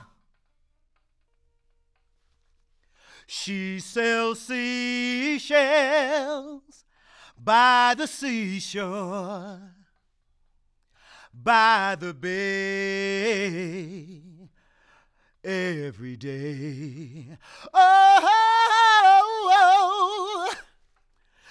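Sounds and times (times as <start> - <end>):
a cappella singing: 3.3 - 6.8, 7.4 - 9.8, 11.4 - 14.5, 15.5 - 20.7.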